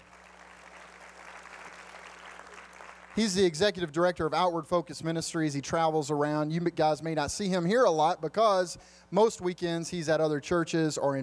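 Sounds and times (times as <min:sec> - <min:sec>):
audience applause at a church gathering: 0:00.0 - 0:03.3
speech: 0:03.2 - 0:11.2.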